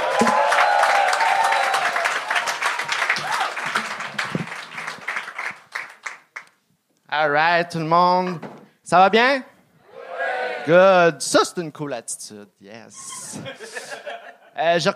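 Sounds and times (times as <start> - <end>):
audience applause and cheering for comedian: 0.0 - 6.5
speech: 7.2 - 9.5, 10.6 - 14.9
laughter: 13.0 - 14.6.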